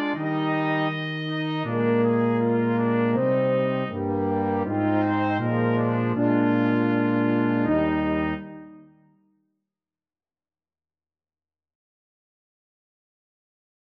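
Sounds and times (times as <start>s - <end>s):
brass instruments: 0.0s - 9.2s.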